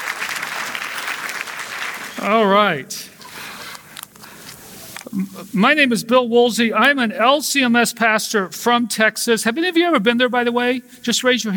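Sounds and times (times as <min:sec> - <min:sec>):
audience applause: 0:00.0 - 0:02.6
speech: 0:02.2 - 0:03.2, 0:05.2 - 0:11.5.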